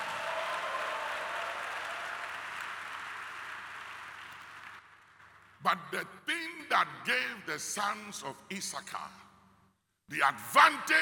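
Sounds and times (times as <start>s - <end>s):
audience clapping hands: 0.0s - 5.6s
speech: 5.6s - 9.2s, 10.1s - 11.0s.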